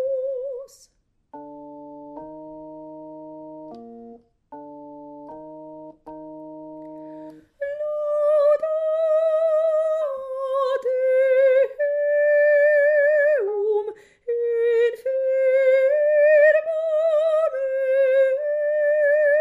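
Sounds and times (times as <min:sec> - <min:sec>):
soprano singing a psalm: 0:00.0 - 0:01.0, 0:07.1 - 0:19.3.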